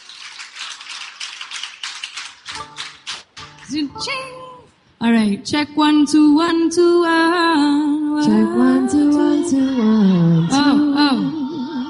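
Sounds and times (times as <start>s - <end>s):
audience clapping in unison: 0.0s - 3.8s
speech: 3.7s - 11.3s.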